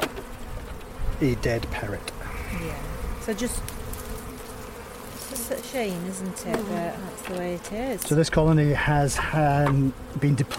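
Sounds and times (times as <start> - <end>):
honeybees buzzing at an opened hive: 0.0 - 10.5
speech: 1.2 - 3.8, 5.4 - 10.5.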